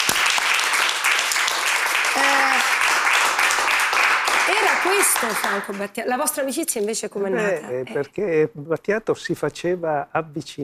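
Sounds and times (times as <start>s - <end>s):
audience applause: 0.0s - 5.9s
speech: 4.8s - 10.6s.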